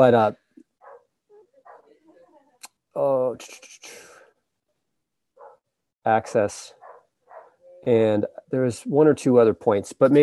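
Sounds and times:
speech: 0.0 - 0.4, 3.0 - 4.1, 6.0 - 6.8, 7.8 - 10.2
dog barking in the background: 0.8 - 1.9, 5.4 - 5.7, 6.8 - 7.6.

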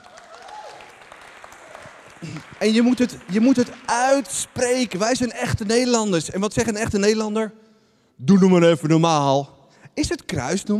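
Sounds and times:
audience applause: 0.0 - 5.9
speech: 2.2 - 7.6, 8.2 - 10.7.

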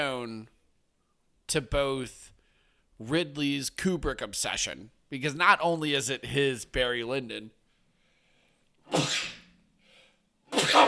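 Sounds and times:
speech: 1.5 - 2.3, 3.0 - 7.6, 8.9 - 9.3
person sneezing: 8.9 - 9.6, 10.5 - 10.8.

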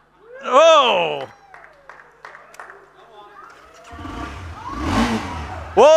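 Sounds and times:
man talking excitedly: 0.4 - 1.3, 5.8 - 5.9
vehicle engine revving: 3.6 - 5.9
speech: 5.8 - 5.9.

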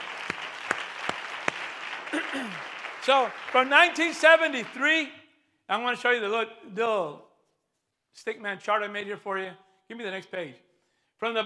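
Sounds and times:
audience clapping hands: 0.0 - 5.1
speech: 2.3 - 7.3, 8.2 - 10.6, 11.2 - 11.4.

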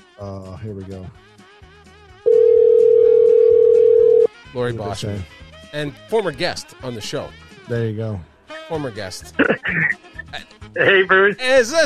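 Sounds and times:
speech: 0.2 - 1.4, 4.5 - 11.8
telephone dial tone while calling: 2.3 - 4.3.

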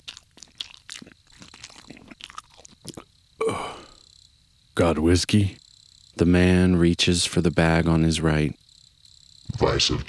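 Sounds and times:
wet crunchy chewing of cooked meat: 0.0 - 4.0
speech: 4.8 - 5.6, 6.2 - 8.6, 9.6 - 10.0.

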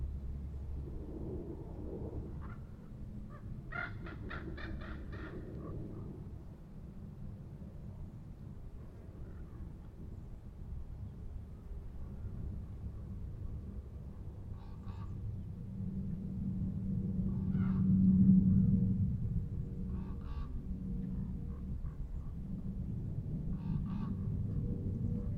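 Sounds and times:
low rumble at Manzanita Barren: 0.0 - 8.0, 9.8 - 25.3
crow-like caws: 3.3 - 5.7.

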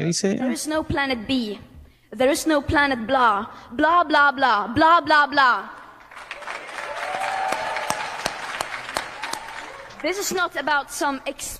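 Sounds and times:
speech: 0.0 - 5.8, 10.0 - 11.5
audience applause in played recording: 6.0 - 10.6.

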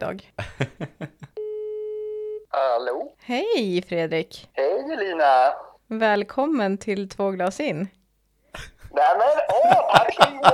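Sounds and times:
speech: 0.0 - 1.1, 2.6 - 8.0, 8.6 - 10.5
laughter: 0.4 - 1.4, 8.6 - 10.5
phone dialing beeps: 1.4 - 2.4
phone ringing tone: 1.4 - 2.5.

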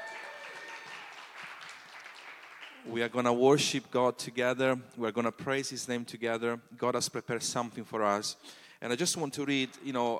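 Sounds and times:
audience applause: 0.0 - 3.0
speech: 2.8 - 10.1.

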